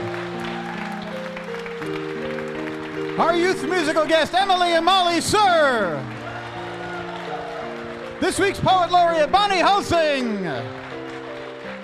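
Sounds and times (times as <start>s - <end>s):
audience applause: 0.0s - 11.8s
speech: 3.2s - 6.2s, 8.2s - 10.8s.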